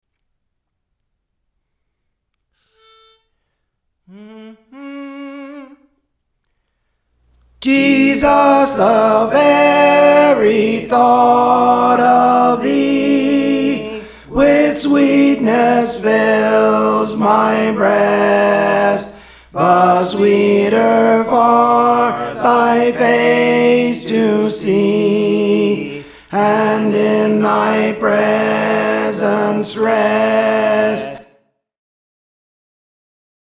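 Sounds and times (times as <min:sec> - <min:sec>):
tenor singing: 0:07.4 - 0:31.3.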